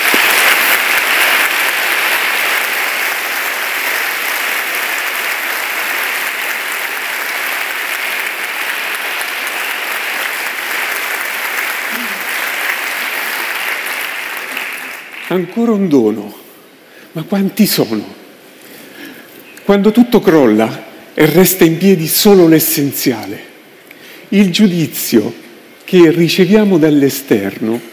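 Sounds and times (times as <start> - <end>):
audience applause: 0.0 - 15.6
speech: 15.3 - 16.4, 17.2 - 18.2, 19.7 - 23.5, 24.3 - 27.9.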